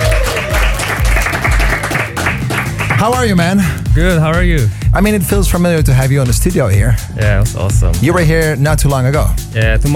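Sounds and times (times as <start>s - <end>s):
studio audience applause in a radio studio: 0.0s - 3.5s
steady thumping music beat: 0.0s - 9.9s
speech: 3.0s - 9.9s.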